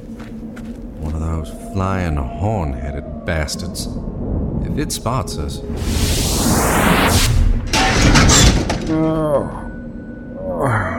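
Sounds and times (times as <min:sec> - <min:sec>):
speech: 0:01.4 - 0:07.4, 0:08.9 - 0:09.7, 0:10.6 - 0:10.9
rising whoosh: 0:03.7 - 0:07.8
person crashing onto a car: 0:07.6 - 0:09.0
debris rattling: 0:07.6 - 0:09.4.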